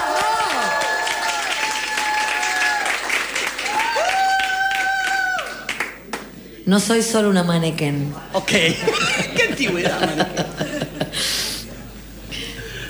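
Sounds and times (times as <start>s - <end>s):
audience applause: 0.0s - 6.3s
speech: 6.7s - 11.4s
laughter: 8.4s - 12.8s.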